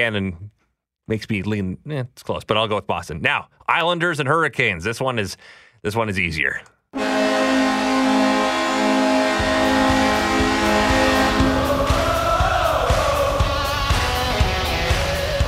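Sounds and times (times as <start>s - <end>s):
speech: 0.0s - 7.1s
hockey arena goal horn blaring: 7.0s - 12.6s
hockey crowd roaring: 7.2s - 15.4s.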